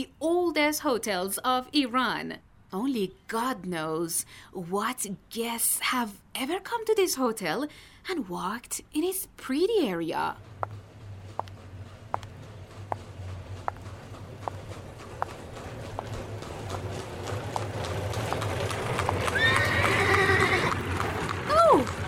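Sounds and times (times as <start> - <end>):
speech: 0.0 - 10.8
street noise: 8.8 - 22.0
horse-drawn carriage hooves clip-clopping along a street beside an old Qajar-era hotel in Iran: 9.5 - 22.0.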